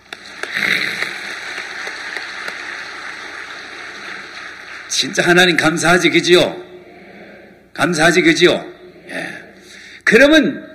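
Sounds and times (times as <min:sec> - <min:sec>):
audience applause: 0:00.0 - 0:06.0
speech: 0:05.0 - 0:06.6, 0:07.8 - 0:08.7, 0:10.1 - 0:10.7.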